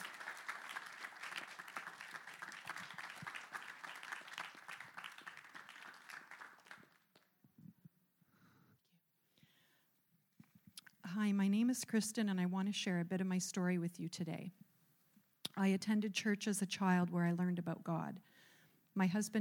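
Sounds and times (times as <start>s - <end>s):
congregation applause in a church for a woman walking to her baptism: 0.0s - 7.2s
speech: 11.2s - 14.7s, 15.6s - 18.4s, 19.0s - 19.3s.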